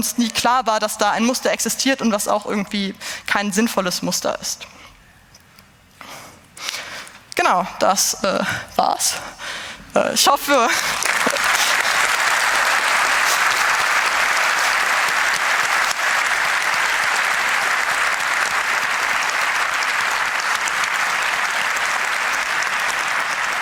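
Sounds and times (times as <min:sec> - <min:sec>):
speech: 0:00.0 - 0:04.9, 0:07.4 - 0:11.4
audience applause in a lecture hall: 0:10.8 - 0:23.6.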